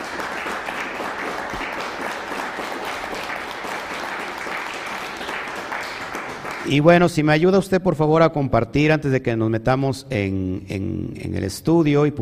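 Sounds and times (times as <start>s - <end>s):
audience applause: 0.0s - 6.9s
speech: 6.7s - 12.2s.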